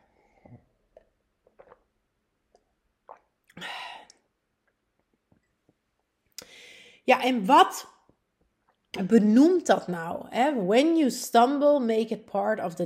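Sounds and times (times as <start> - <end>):
person sipping water: 0.1 - 6.6
speech: 7.1 - 7.9, 9.0 - 12.8.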